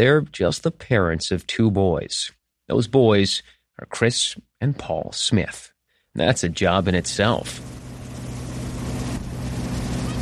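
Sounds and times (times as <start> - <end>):
speech: 0.0 - 7.8
motorboat engine towing water skiers: 7.0 - 10.2.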